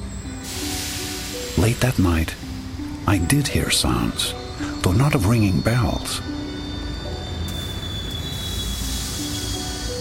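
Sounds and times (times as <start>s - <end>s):
hissing steam: 0.4s - 2.6s, 7.5s - 10.0s
speech: 1.6s - 2.5s, 3.1s - 6.3s
squeaking metal: 3.8s - 10.0s.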